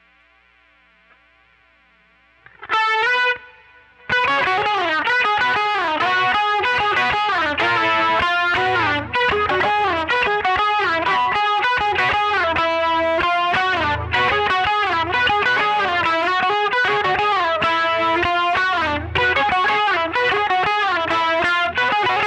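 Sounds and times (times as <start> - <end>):
guitar solo through a Quilter amplifier: 2.4 - 22.2.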